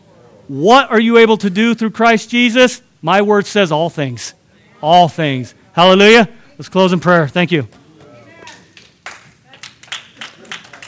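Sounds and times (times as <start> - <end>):
faint murmuring voices: 0.0 - 10.8
speech: 0.5 - 7.8
group clapping: 5.1 - 10.8.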